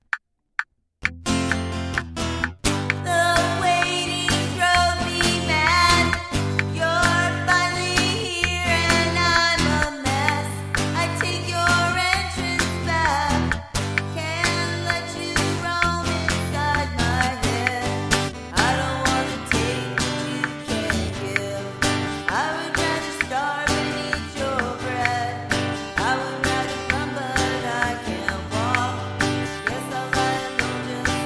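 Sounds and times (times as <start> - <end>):
metronome noise: 0.0 - 31.2
vocals with reverb: 3.0 - 31.2.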